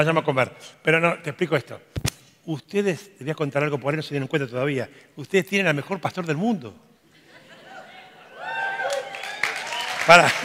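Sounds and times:
speech: 0.0 - 6.9, 10.1 - 10.4
laughter: 7.1 - 8.7, 10.2 - 10.4
audience applause: 8.4 - 10.4.

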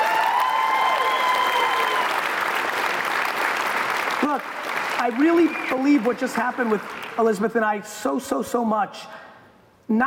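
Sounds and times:
audience clapping: 0.0 - 7.6
speech: 4.3 - 9.2, 9.9 - 10.0.

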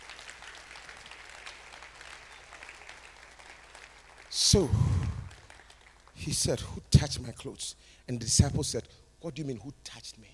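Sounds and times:
audience clapping: 0.0 - 6.5
speech: 4.4 - 5.0, 6.2 - 10.3.

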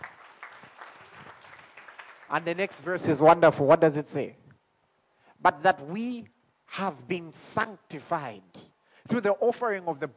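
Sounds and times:
audience clapping: 0.0 - 3.3
speech: 2.3 - 4.4, 5.4 - 10.1.

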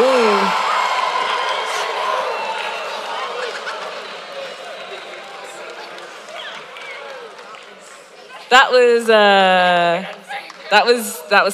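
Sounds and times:
crowd cheering during tug of war: 0.0 - 11.5
speech: 8.5 - 11.5.

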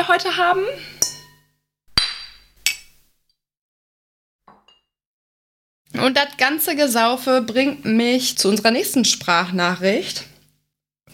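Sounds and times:
speech: 0.0 - 1.0, 5.9 - 10.3
glasses clinking in a toast: 1.0 - 3.0.

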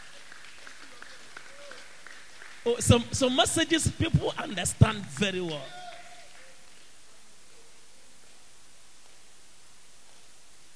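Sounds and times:
audience clapping: 0.0 - 7.3
speech: 2.6 - 5.8.

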